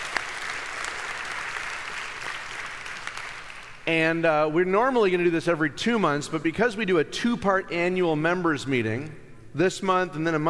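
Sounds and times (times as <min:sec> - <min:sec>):
audience applause: 0:00.0 - 0:03.8
speech: 0:03.9 - 0:10.4.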